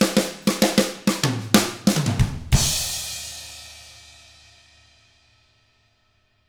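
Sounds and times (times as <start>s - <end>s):
hard rock drums: 0.0s - 4.1s.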